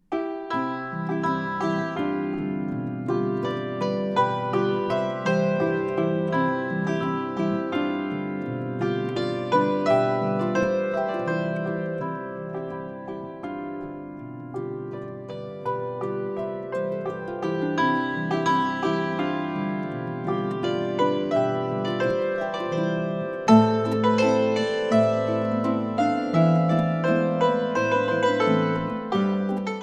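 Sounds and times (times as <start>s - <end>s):
hammered dulcimer playing a Boarischer folk dance: 0.0s - 29.8s
harp playing a Boarischer folk dance: 0.0s - 29.8s.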